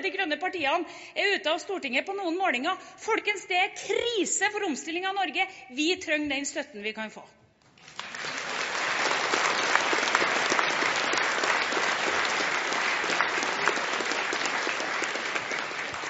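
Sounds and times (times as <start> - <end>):
speech: 0.0 - 7.4
large audience clapping in a hall: 7.7 - 16.0.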